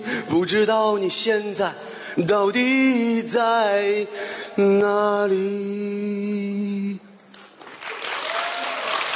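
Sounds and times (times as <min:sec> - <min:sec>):
speech: 0:00.3 - 0:07.0
audience applause: 0:07.6 - 0:09.1.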